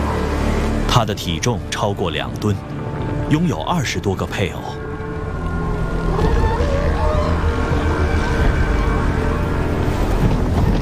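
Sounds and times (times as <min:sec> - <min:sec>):
wind: 0:00.0 - 0:10.7
speech: 0:01.0 - 0:04.8
male northern elephant seal vocalizing: 0:05.8 - 0:09.0.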